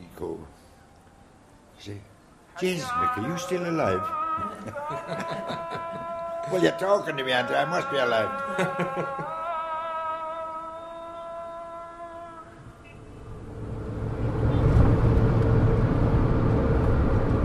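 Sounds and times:
speech: 1.8s - 9.4s
laughter: 4.2s - 9.7s
car driving on a six-lane highway from Abu Dhabi to Dubai: 12.9s - 17.4s.

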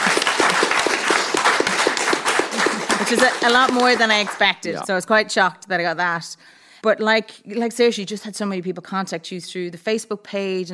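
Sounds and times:
crowd applauding: 0.0s - 4.9s
speech: 3.0s - 10.7s.

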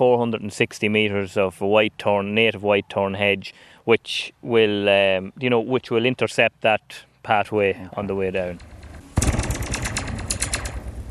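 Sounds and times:
speech: 0.0s - 8.7s
taut wire fence struck, springy zinging ring: 8.4s - 11.1s.

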